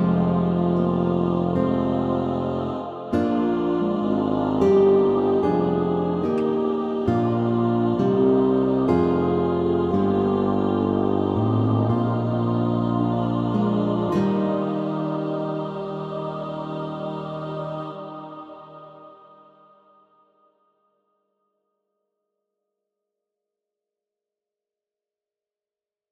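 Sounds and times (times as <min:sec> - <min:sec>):
guitars: 0:00.0 - 0:17.0
tuba: 0:00.0 - 0:17.8
choir singing: 0:00.0 - 0:20.3.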